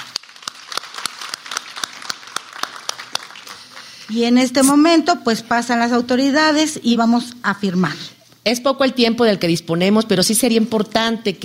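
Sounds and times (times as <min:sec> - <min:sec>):
audience applause: 0:00.0 - 0:04.1
speech: 0:04.1 - 0:11.4.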